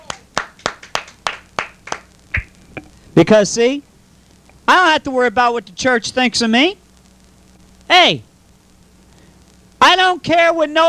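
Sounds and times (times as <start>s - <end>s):
hands clapping in praise during a church worship service: 0.0s - 2.5s
speech: 3.2s - 3.9s, 4.8s - 6.8s, 7.9s - 8.3s, 9.9s - 10.8s.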